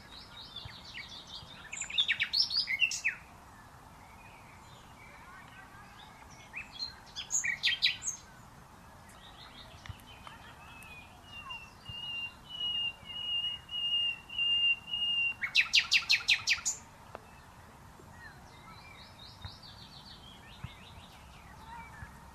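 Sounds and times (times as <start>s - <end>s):
common nightingale song: 0.0s - 22.3s.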